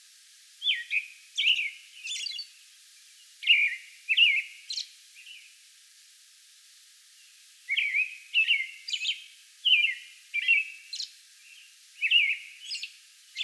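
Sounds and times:
American robin singing: 0.6 - 2.5, 3.4 - 5.5, 7.7 - 13.4.

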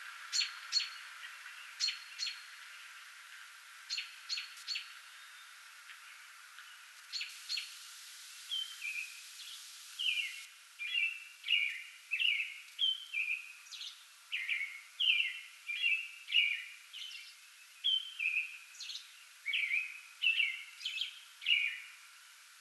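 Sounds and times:
American robin song: 1.8 - 2.4, 3.9 - 5.6, 7.1 - 7.8, 8.5 - 22.0.

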